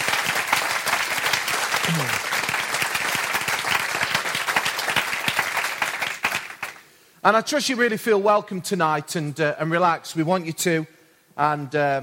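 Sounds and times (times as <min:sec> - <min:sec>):
audience applause at an evening event: 0:00.0 - 0:06.8
speech: 0:01.9 - 0:02.2, 0:07.2 - 0:12.0.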